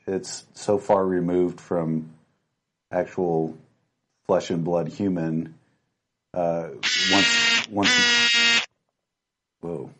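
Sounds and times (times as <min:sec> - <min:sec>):
speech: 0:00.1 - 0:02.2, 0:02.9 - 0:03.6, 0:04.3 - 0:05.6, 0:06.3 - 0:08.4
phone buzzing or ringing: 0:06.8 - 0:08.7.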